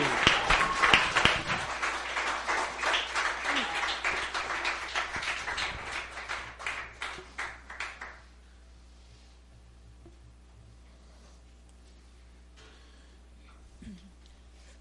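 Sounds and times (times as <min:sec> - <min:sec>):
audience applause: 0:00.0 - 0:08.2.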